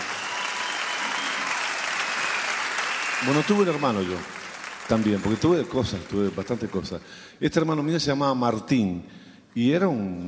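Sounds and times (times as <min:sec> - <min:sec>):
loud applause for a band: 0:00.0 - 0:07.2
speech: 0:03.2 - 0:10.2.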